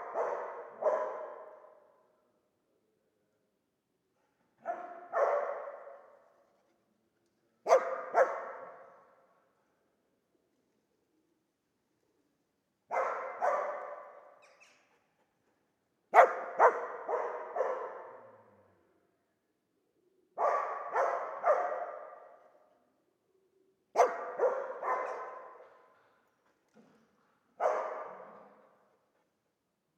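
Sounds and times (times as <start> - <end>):
dog barking: 0.0 - 1.9, 4.6 - 6.2, 7.6 - 9.1, 12.9 - 14.4, 16.1 - 18.5, 20.4 - 22.5, 24.0 - 25.9, 27.6 - 28.8.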